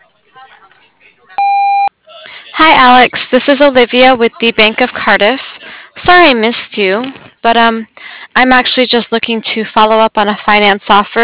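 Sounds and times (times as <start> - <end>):
voicemail message tone beep: 1.4 - 1.9
speech: 2.6 - 11.2.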